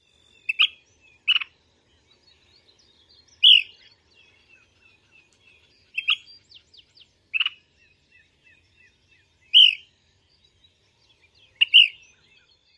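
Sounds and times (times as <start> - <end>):
calls: 3.4 - 3.9, 9.5 - 9.9, 11.5 - 12.2.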